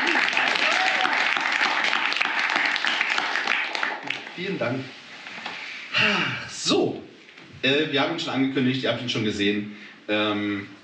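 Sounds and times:
sustained audience applause: 0:00.0 - 0:04.6
speech: 0:04.6 - 0:05.0, 0:07.6 - 0:10.8.

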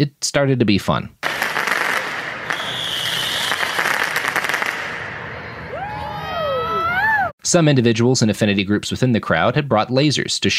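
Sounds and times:
speech: 0:00.0 - 0:01.2, 0:07.5 - 0:10.5
commercial-grade fireworks exploding: 0:01.2 - 0:07.2.

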